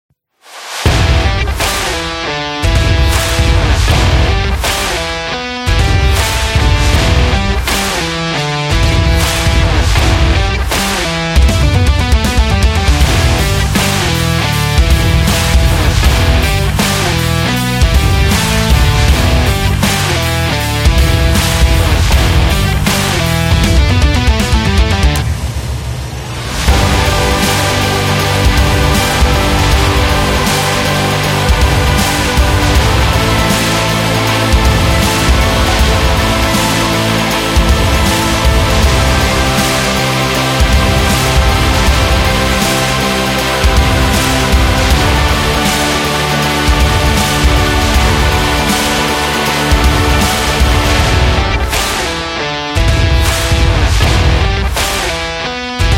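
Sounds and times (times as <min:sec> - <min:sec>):
indie music: 0:00.7 - 0:55.9.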